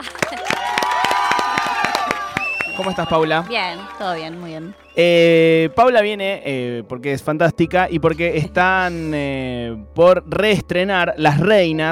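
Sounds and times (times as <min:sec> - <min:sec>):
applause and cheering: 0:00.0 - 0:06.1
speech: 0:02.8 - 0:11.9.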